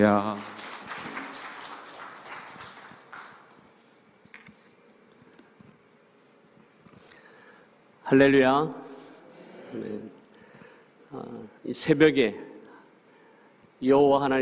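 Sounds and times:
speech: 0.0 - 0.6, 8.1 - 8.8, 9.7 - 10.2, 11.1 - 12.5, 13.8 - 14.4
audience applauding: 0.0 - 3.8.

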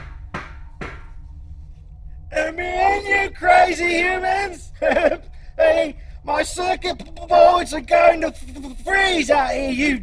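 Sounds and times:
knocking on a window: 0.0 - 1.1
speech: 2.5 - 10.0
laughter: 4.6 - 5.9.

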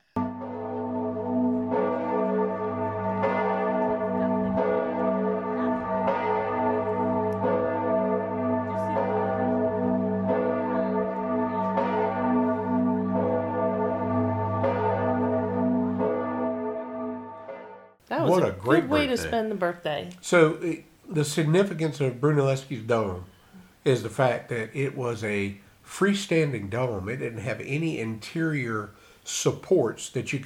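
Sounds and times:
baptistry church bells pealing: 0.2 - 18.8
speech: 18.4 - 30.4.

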